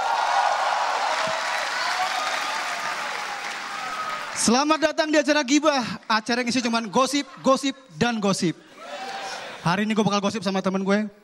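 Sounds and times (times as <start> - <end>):
stand-up comedy show audience clapping to welcome the host: 0.0 - 4.8
speech: 4.4 - 9.0, 9.6 - 11.2.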